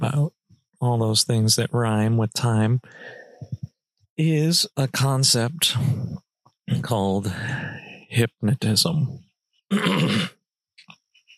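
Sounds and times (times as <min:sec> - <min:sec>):
speech: 0:00.1 - 0:03.2, 0:04.2 - 0:10.3
throat clearing: 0:09.7 - 0:10.4.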